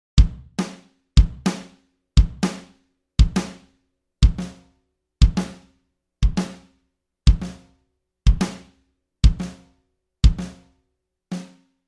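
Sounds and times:
drum groove: 0.2s - 4.6s, 5.2s - 6.7s, 7.3s - 7.7s, 8.3s - 10.7s, 11.3s - 11.6s.

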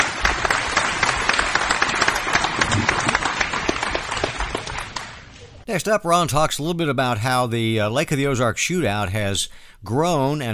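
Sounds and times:
applause: 0.0s - 5.6s
speech: 5.7s - 10.5s.

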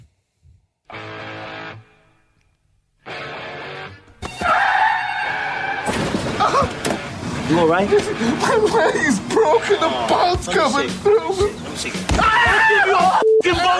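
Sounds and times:
car crash: 5.3s - 7.1s
speech: 7.5s - 13.7s.

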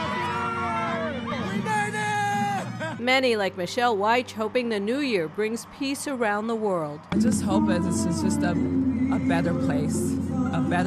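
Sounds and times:
crowd cheering in Times Square on New Year's Eve: 0.0s - 3.0s
speech: 3.1s - 10.8s.

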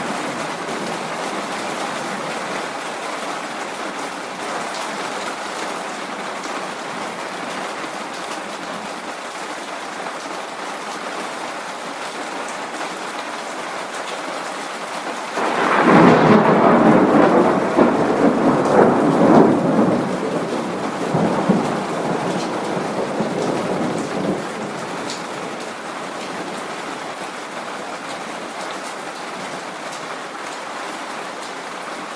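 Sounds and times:
rain: 0.0s - 32.1s
thunder: 15.4s - 25.4s.

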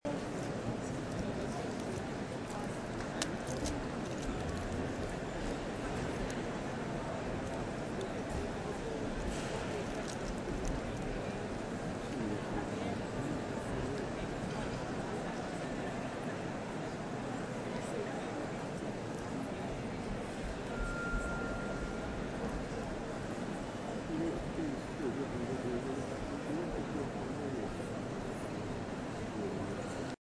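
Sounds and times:
Royal Albert Hall Prom audience atmosphere: 0.1s - 30.1s.

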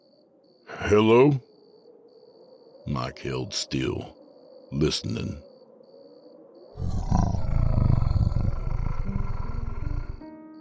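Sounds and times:
speech: 0.9s - 1.5s, 2.9s - 5.5s
strangled half-groaning growl: 6.8s - 10.3s.

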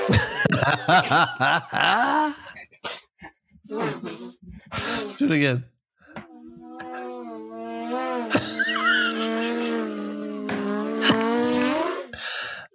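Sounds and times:
laughter: 0.0s - 2.5s, 8.3s - 9.8s
speech: 0.1s - 2.8s, 5.2s - 5.7s
person humming nasal buzzing drone imitating an engine: 6.2s - 12.2s.

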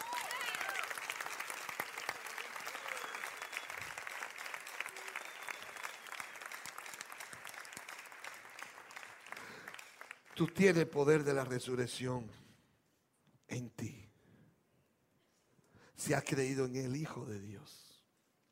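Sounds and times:
crowd applauding: 0.0s - 11.3s
speech: 10.4s - 12.4s, 16.1s - 17.9s.

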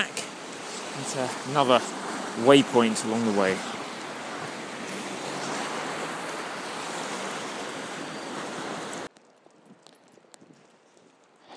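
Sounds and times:
river water surging beneath a bridge: 0.0s - 9.1s
speech: 1.0s - 3.8s.

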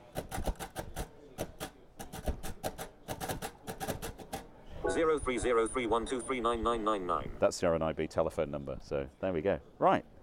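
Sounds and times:
Braille writer typing numbers in uncontracted grade one Braille: 0.0s - 4.4s
speech: 4.9s - 10.2s.

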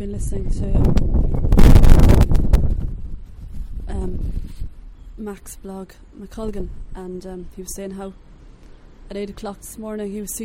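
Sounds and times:
speech: 0.0s - 2.3s, 5.2s - 8.3s, 9.1s - 10.4s
wind blowing outdoors: 0.0s - 10.4s.

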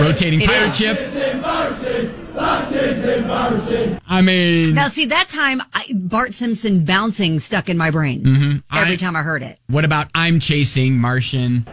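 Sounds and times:
soccer crowd chanting: 0.0s - 4.0s
speech: 0.1s - 11.7s.

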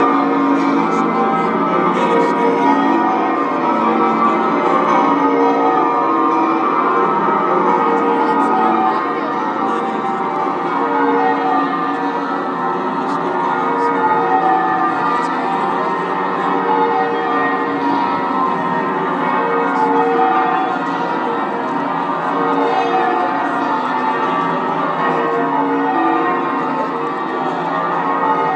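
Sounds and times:
deafening bells: 0.0s - 28.5s.

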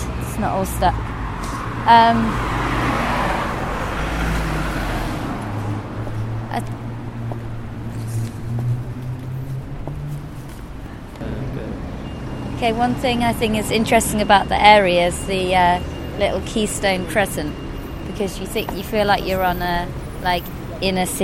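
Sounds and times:
continuous low roadway hum: 0.0s - 21.2s
speech: 0.4s - 1.1s, 1.8s - 2.6s, 12.6s - 17.6s, 18.2s - 21.2s
loud vehicle whooshing past over a deep engine rumble: 1.0s - 10.7s.

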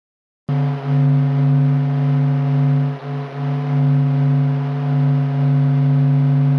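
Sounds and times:
sonified NASA audio of the sun: 0.5s - 6.5s.

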